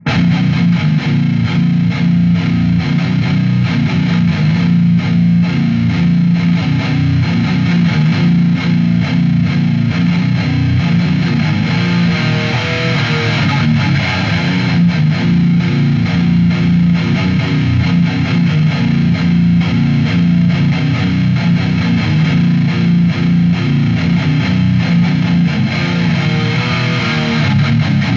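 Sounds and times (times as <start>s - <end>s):
metal music: 0.0s - 28.1s.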